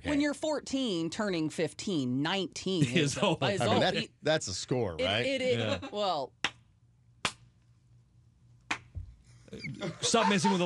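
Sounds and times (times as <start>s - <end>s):
speech: 0.0s - 6.4s, 9.5s - 10.6s
laughter: 2.8s - 4.1s, 9.6s - 10.6s
half-hearted locker room group clap: 7.2s - 7.5s.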